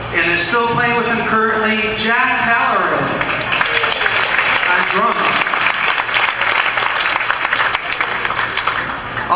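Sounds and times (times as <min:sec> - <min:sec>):
speech: 0:00.2 - 0:03.3
audience applause: 0:03.2 - 0:09.2.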